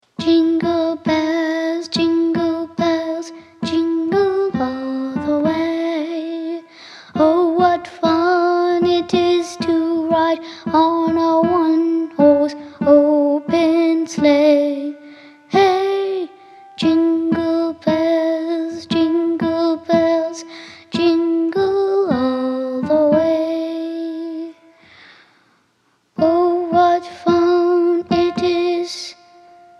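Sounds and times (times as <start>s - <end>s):
Christmas song: 0.0s - 29.7s.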